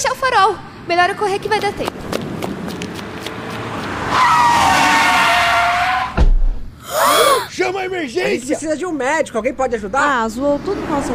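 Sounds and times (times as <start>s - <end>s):
speech: 0.2s - 2.0s, 4.2s - 4.7s, 7.7s - 11.1s
car tires skidding: 2.2s - 6.2s.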